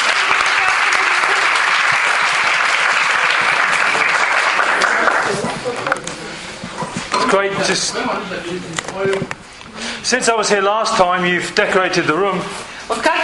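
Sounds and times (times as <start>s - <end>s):
audience clapping hands: 0.0s - 6.3s
speech: 7.3s - 9.4s, 10.0s - 13.2s.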